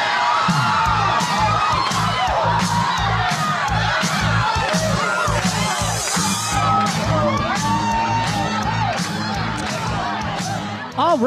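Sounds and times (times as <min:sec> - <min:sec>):
crowd cheering and whooping: 0:00.0 - 0:11.0
thumping party beat: 0:00.0 - 0:11.2.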